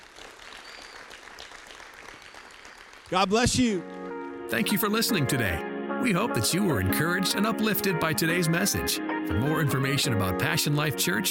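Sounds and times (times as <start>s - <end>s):
audience applauding: 0.0s - 4.3s
speech: 3.1s - 3.9s, 4.5s - 11.3s.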